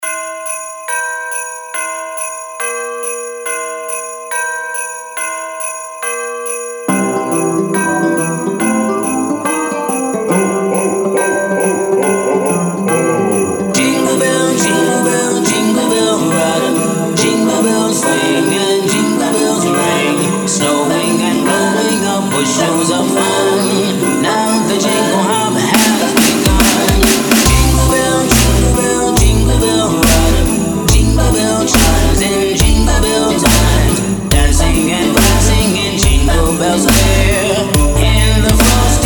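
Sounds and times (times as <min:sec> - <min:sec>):
dubstep remix of a Christmas song: 0:00.0 - 0:39.0.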